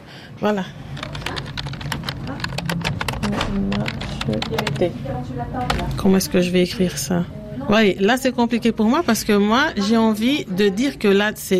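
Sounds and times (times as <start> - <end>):
speech: 0.4 - 0.8, 3.3 - 11.5
typing on a computer keyboard to write up care observations: 0.8 - 5.0, 5.6 - 6.2.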